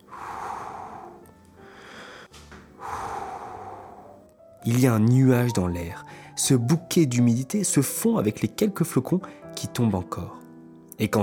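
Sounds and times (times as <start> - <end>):
deep forceful breaths of cold air: 0.0 - 4.3, 6.0 - 6.4
speech: 4.6 - 10.4, 11.0 - 11.2.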